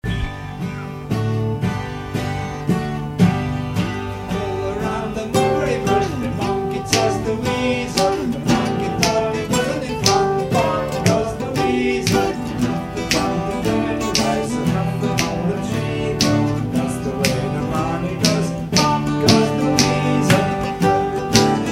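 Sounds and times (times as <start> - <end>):
pop MIDI music: 0.0 - 21.6.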